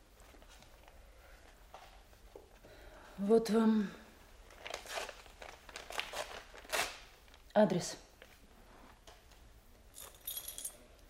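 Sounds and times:
speech: 3.2 - 4.0, 7.6 - 8.0
apartment keys jingling as they are handed over: 10.0 - 10.8.

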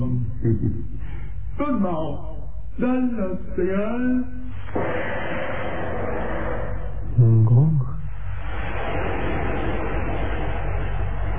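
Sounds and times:
steady mechanical buzzing hum: 0.0 - 11.3
speech: 0.4 - 1.0, 1.6 - 5.2, 7.2 - 7.9
dense hiss: 4.4 - 11.3.

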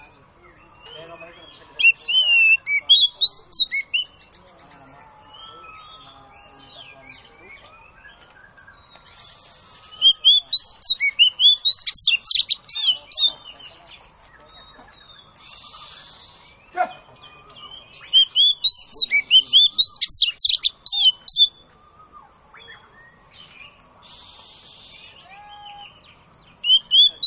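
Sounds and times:
Oriental magpie-robin calls: 0.0 - 4.4, 5.3 - 21.6, 24.0 - 27.2.

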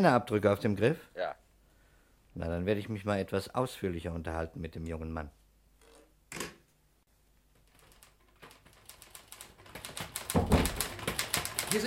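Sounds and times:
speech: 0.0 - 1.4, 2.4 - 5.4
typing on an office typewriter: 7.5 - 11.8.

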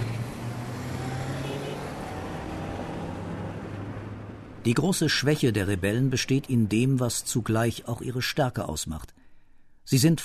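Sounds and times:
fighters' cars speeding away toward the town exit: 0.0 - 4.7
speech: 4.6 - 9.2, 9.9 - 10.2.

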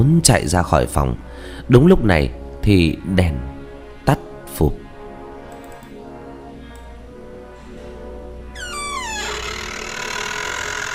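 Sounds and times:
speech: 0.0 - 4.8
wardrobe doors creaking open: 8.6 - 10.9.

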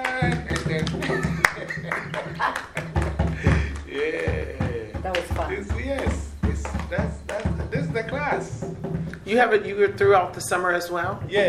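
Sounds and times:
applause: 0.0 - 4.4, 5.1 - 6.1
laughter: 0.0 - 8.0
speech: 0.2 - 1.2, 9.3 - 11.4.

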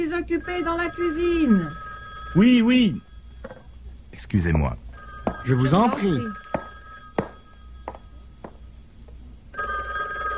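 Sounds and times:
speech: 0.0 - 3.1, 4.2 - 4.8, 5.4 - 6.4
low hum: 0.0 - 10.3
telephone bell ringing: 0.3 - 3.7, 4.9 - 8.3, 9.5 - 10.3.

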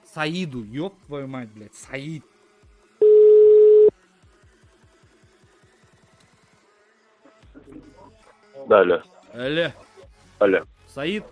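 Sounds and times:
speech: 0.2 - 2.3, 8.7 - 9.8, 10.4 - 11.2
telephone dial tone during a phone call: 3.0 - 3.9.

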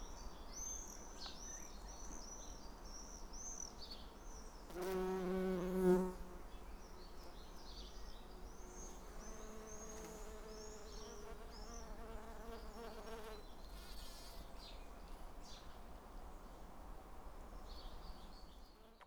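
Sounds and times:
small birds chirping: 0.0 - 16.6
bumblebee buzz: 4.7 - 6.4, 8.6 - 14.3.

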